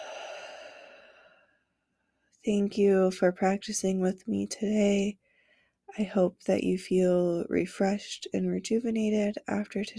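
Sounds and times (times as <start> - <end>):
long slow exhale during a breathing exercise: 0.0 - 1.7
speech: 2.4 - 5.2, 5.9 - 9.9.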